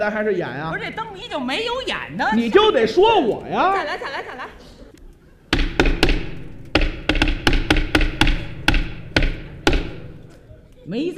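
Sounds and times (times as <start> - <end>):
speech: 0.0 - 4.6, 10.9 - 11.1
laughter: 3.7 - 5.4
knocking on a door: 5.5 - 10.2.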